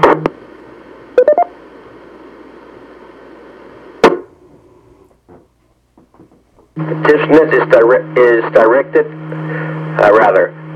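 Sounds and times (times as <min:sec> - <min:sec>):
DTMF telephone keypad tones resetting an amateur radio repeater: 0:01.2 - 0:01.6
speech: 0:06.8 - 0:09.2, 0:10.0 - 0:10.6.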